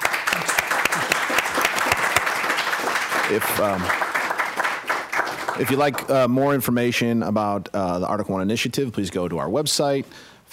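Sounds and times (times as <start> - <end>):
audience applause: 0.0 - 6.3
speech: 3.3 - 4.0, 5.6 - 10.5.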